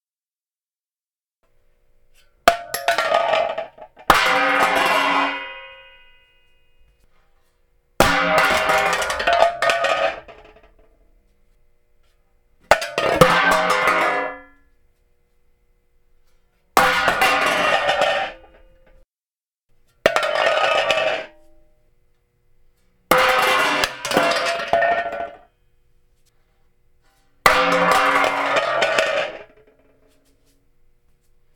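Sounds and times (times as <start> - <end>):
pots and pans falling: 2.5 - 6.4, 8.0 - 10.8, 12.7 - 14.7, 16.8 - 19.0, 20.0 - 21.5, 23.1 - 25.5, 27.4 - 30.3.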